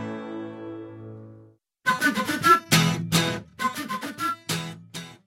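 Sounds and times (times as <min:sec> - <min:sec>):
flutes: 0:01.9 - 0:04.7.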